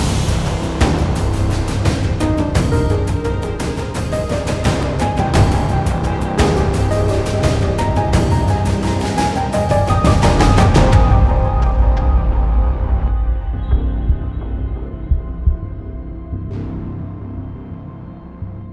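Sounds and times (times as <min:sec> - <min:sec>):
synth drum action strikes: 0:00.0 - 0:16.3.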